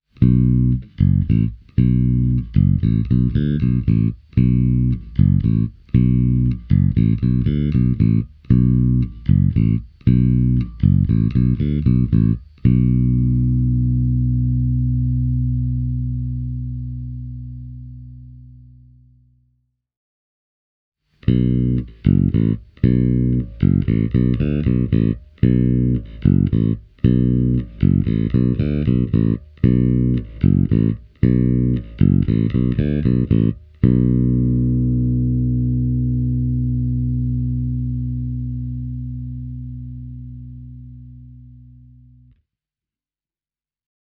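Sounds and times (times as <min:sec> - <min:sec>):
ash-body bass guitar played with fingers: 0:00.0 - 0:19.4, 0:21.2 - 0:42.4.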